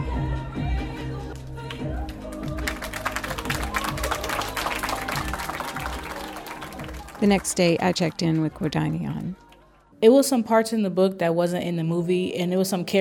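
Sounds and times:
low steady music: 0:00.0 - 0:12.0
small group clapping politely: 0:01.6 - 0:09.9
speech: 0:07.2 - 0:12.9.

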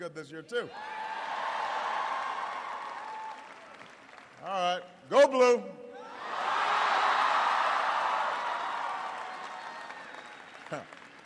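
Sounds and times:
speech: 0:00.0 - 0:01.1, 0:04.4 - 0:05.8, 0:10.7 - 0:11.0
scattered cheers: 0:00.7 - 0:03.7, 0:06.0 - 0:10.9
large crowd applauding: 0:01.0 - 0:04.5, 0:06.2 - 0:11.2.

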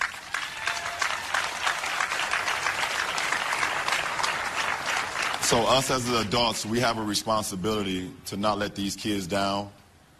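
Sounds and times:
audience applause: 0:00.0 - 0:06.2
speech: 0:05.5 - 0:09.8.

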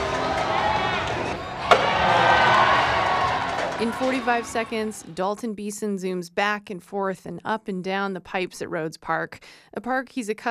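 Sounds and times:
crowd cheering and applauding: 0:00.0 - 0:05.2
speech: 0:03.8 - 0:10.5.

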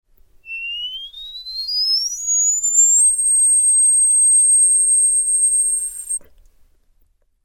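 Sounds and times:
person whistling: 0:00.5 - 0:06.2.

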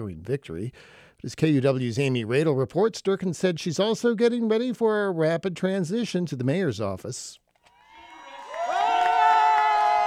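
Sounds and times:
speech: 0:00.1 - 0:07.4
crowd cheering at an election night party in a hotel ballroom in Seattle: 0:07.7 - 0:10.0.

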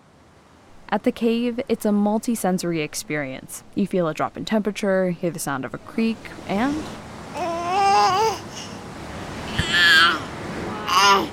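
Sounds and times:
speech: 0:00.9 - 0:07.0
baby babbling: 0:07.3 - 0:08.8, 0:09.5 - 0:11.3.

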